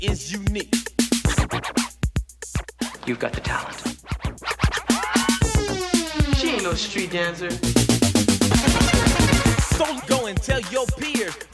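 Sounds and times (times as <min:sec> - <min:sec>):
speech: 0:00.0 - 0:00.8, 0:03.1 - 0:03.9, 0:06.7 - 0:09.0, 0:09.8 - 0:11.5
DJ scratch mix: 0:00.0 - 0:11.5.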